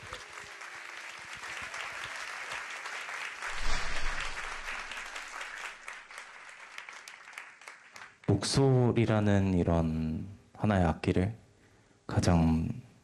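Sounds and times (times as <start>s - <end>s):
audience applause: 0.0s - 3.6s, 4.2s - 8.1s
speech: 8.4s - 11.4s, 12.2s - 12.8s.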